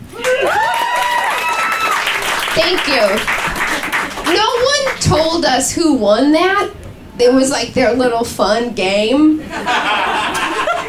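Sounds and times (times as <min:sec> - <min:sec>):
audience applause: 0:00.0 - 0:05.0
speech: 0:02.6 - 0:03.4, 0:04.3 - 0:10.4
laughter: 0:09.4 - 0:10.8.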